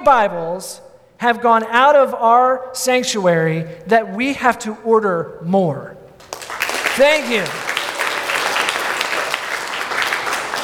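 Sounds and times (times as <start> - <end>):
speech: 0.0 - 6.0, 7.0 - 7.6
polite audience applause: 6.2 - 10.6.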